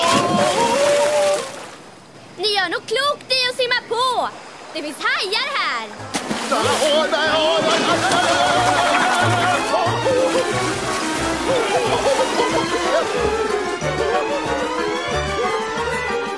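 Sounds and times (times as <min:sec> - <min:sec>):
splash of people thrown into water: 0:00.0 - 0:01.8, 0:06.1 - 0:13.0
speech: 0:02.6 - 0:09.4, 0:11.5 - 0:14.8
laughter: 0:06.5 - 0:15.7.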